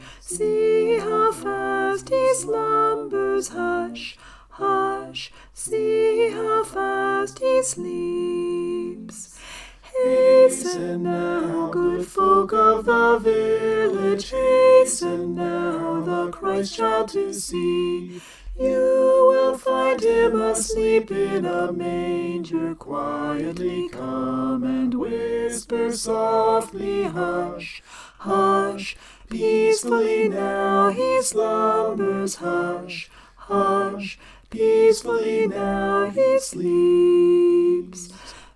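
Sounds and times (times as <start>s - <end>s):
soprano singing a carol: 0.0s - 38.5s.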